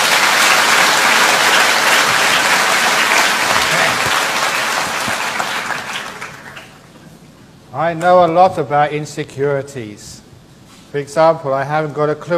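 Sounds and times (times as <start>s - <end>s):
audience applause welcoming a speaker on stage: 0.0s - 6.9s
speech: 7.9s - 10.1s, 10.9s - 12.3s.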